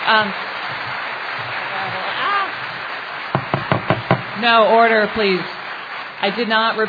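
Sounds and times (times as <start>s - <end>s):
audience applause at a town meeting: 0.0s - 6.3s
speech: 0.1s - 0.5s, 4.4s - 5.6s, 6.2s - 6.8s.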